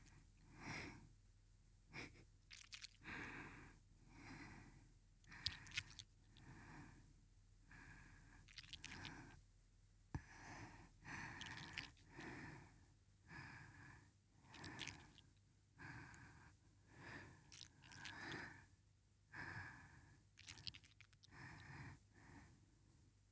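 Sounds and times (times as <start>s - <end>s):
breathing: 0.5s - 1.1s, 3.0s - 7.1s, 7.7s - 9.4s, 10.2s - 15.2s, 15.8s - 18.7s, 19.3s - 20.2s, 21.3s - 22.7s.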